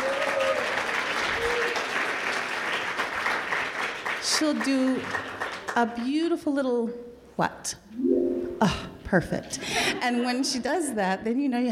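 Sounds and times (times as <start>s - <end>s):
audience applause: 0.0s - 5.8s
speech: 4.3s - 11.7s.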